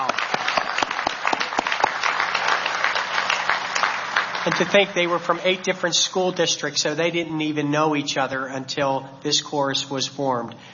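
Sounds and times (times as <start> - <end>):
audience applause: 0.0 - 5.4
speech: 4.4 - 10.7.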